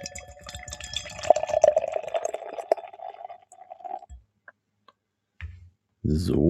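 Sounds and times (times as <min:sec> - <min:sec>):
light glass clinks: 0:00.0 - 0:02.3
beer glugging and splashing into a glass: 0:00.0 - 0:04.2.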